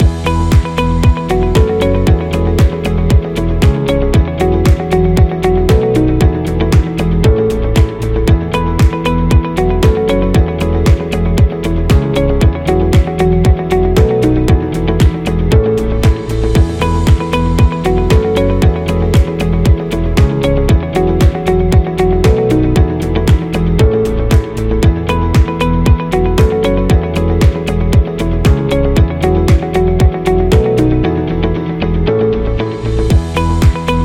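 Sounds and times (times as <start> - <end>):
business promo music loop: 0.0 - 34.0.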